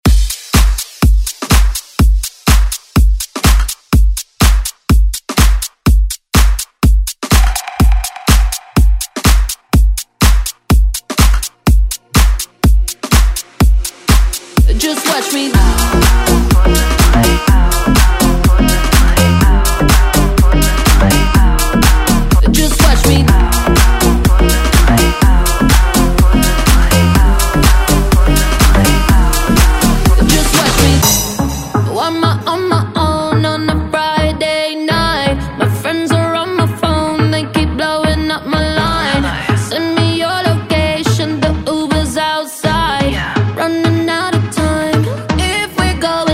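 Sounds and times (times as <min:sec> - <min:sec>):
pop dance music: 0:00.0 - 0:46.3.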